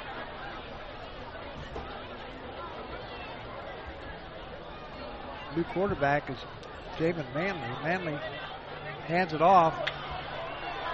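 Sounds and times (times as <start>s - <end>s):
high school football crowd murmur at Welcome Stadium: 0.0s - 10.9s
speech: 5.6s - 8.5s, 9.1s - 9.9s.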